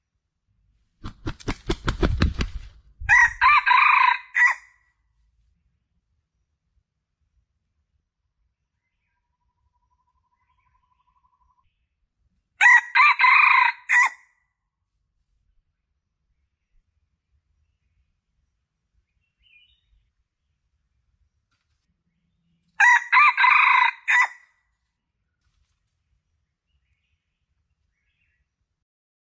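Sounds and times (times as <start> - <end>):
Red junglefowl crowing: 3.1 - 4.7, 12.6 - 14.2, 22.8 - 24.5.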